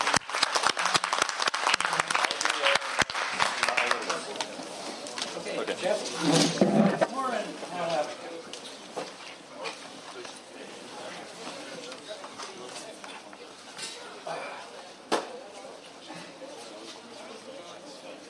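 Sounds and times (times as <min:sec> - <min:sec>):
audience applause: 0:00.0 - 0:04.5
crowd chatter: 0:01.6 - 0:18.2.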